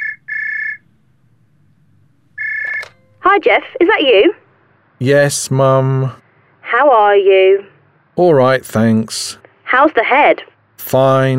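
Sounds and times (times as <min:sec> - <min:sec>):
telephone ringing with electronic trill: 0:00.0 - 0:04.0
faint low hum: 0:00.0 - 0:11.3
speech: 0:03.4 - 0:04.4, 0:05.0 - 0:11.3.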